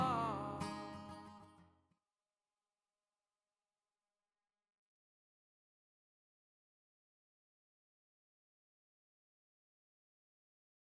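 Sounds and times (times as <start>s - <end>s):
pop singer singing solo: 0.0s - 1.0s
acoustic guitar: 0.0s - 1.8s.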